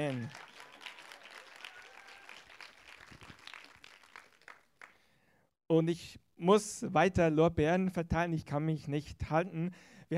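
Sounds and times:
speech: 0:00.0 - 0:00.5, 0:05.7 - 0:10.1
audience applause: 0:00.0 - 0:05.0.

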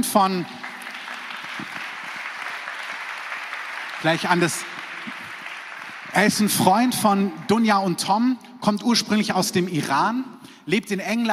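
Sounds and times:
speech: 0:00.0 - 0:00.6, 0:04.0 - 0:05.2, 0:06.2 - 0:11.3
audience applause: 0:00.0 - 0:08.0.

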